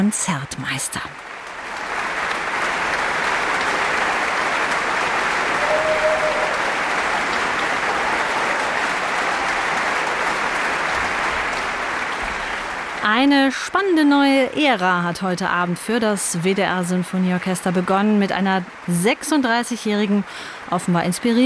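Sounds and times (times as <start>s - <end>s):
speech: 0.0s - 1.3s, 13.0s - 21.4s
concert audience applause for orchestra: 1.2s - 14.2s.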